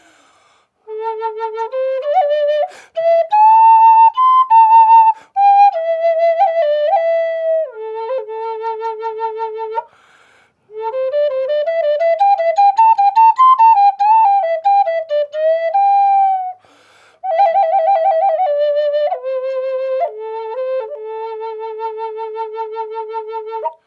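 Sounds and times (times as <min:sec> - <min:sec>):
flutes playing in A minor, dry: 0:00.8 - 0:23.8.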